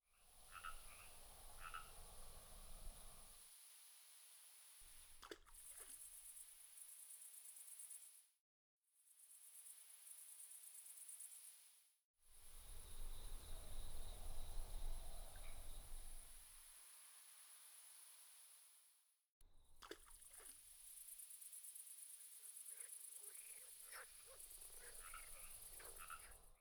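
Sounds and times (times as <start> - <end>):
frogs in a village: 0.1 - 3.6, 4.9 - 8.2, 12.4 - 17.0, 19.8 - 26.5
crickets in a village: 0.1 - 8.3, 9.1 - 18.8, 19.9 - 26.5.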